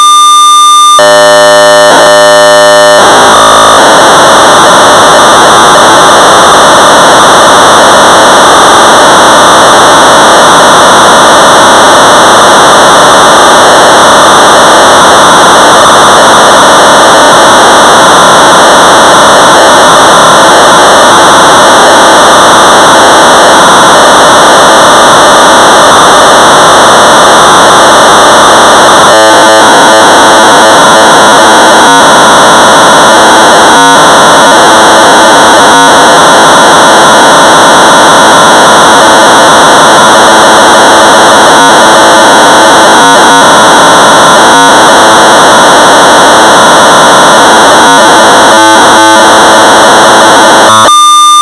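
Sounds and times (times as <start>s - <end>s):
1200 baud modem data tones: 0.2s - 51.4s.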